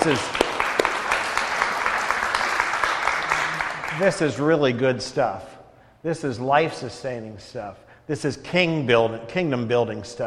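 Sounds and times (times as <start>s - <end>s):
speech: 0.0s - 0.4s, 4.0s - 10.2s
round of applause: 0.0s - 4.3s.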